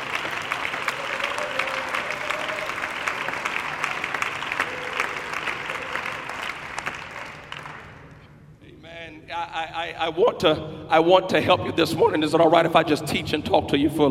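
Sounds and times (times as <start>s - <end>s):
audience clapping: 0.0s - 8.3s
speech: 9.5s - 14.0s.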